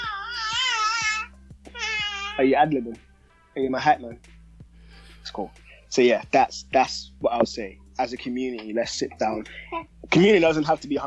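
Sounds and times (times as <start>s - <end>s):
young child screaming and babbling: 0.0s - 2.4s
speech: 2.4s - 4.3s, 5.2s - 11.0s.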